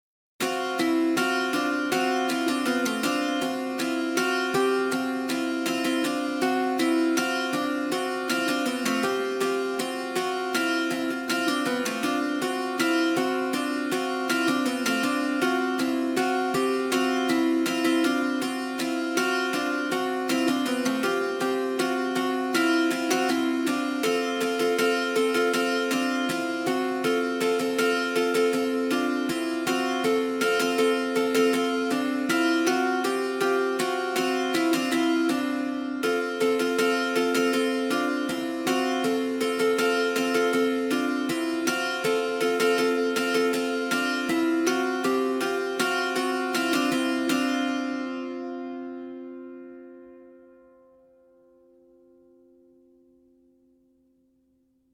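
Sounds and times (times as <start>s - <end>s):
dulcimer: 0.4s - 54.0s.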